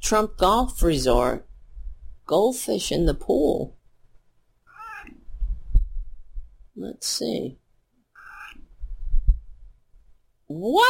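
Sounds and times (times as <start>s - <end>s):
speech: 0.0s - 1.5s, 2.3s - 3.8s, 6.8s - 7.6s, 10.5s - 10.8s
cat meowing: 4.7s - 5.2s, 8.2s - 8.6s.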